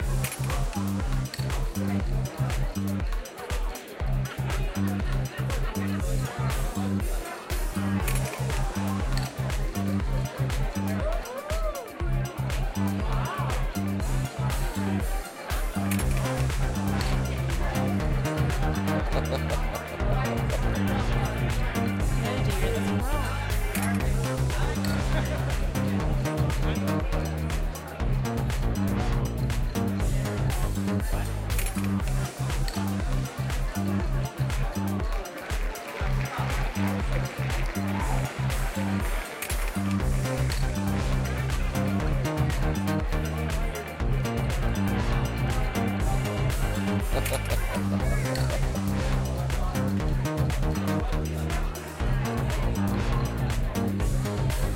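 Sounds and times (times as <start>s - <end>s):
disco music: 0.0s - 54.7s
laughter: 3.6s - 27.5s, 32.2s - 42.2s, 43.3s - 49.8s.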